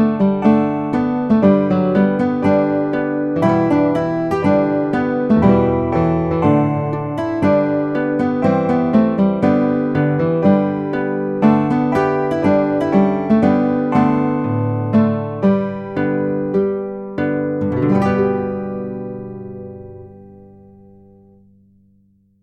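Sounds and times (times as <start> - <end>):
guitar playing: 0.0 - 21.9.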